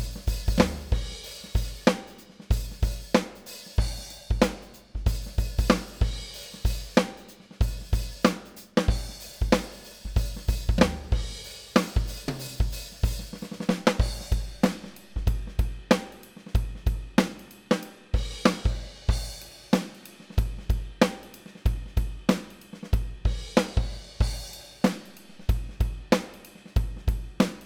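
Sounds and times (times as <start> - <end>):
soul drum groove at 94 bpm: 0.0 - 27.6.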